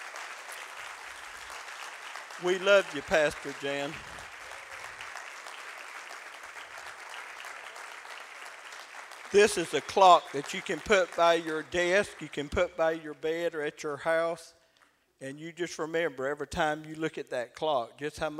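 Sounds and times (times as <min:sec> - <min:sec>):
audience applause: 0:00.0 - 0:12.5
speech: 0:02.4 - 0:04.1, 0:09.3 - 0:14.6, 0:15.2 - 0:18.3.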